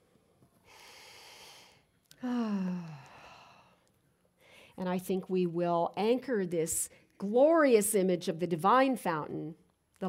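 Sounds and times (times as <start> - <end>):
person taking a slow deep breath: 0.6 - 3.8
speech: 4.8 - 10.0.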